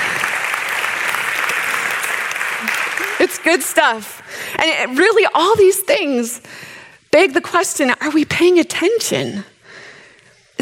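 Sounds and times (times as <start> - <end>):
crowd applauding: 0.0 - 4.2
speech: 3.2 - 9.5.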